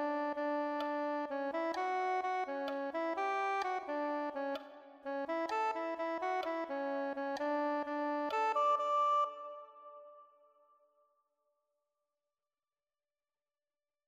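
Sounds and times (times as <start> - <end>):
soprano saxophone: 0.0 - 10.2.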